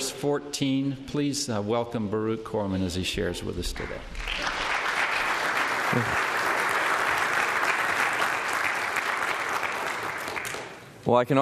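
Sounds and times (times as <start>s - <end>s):
speech: 0.2s - 4.4s, 6.0s - 6.3s, 11.1s - 11.4s
crowd applauding: 4.1s - 11.0s.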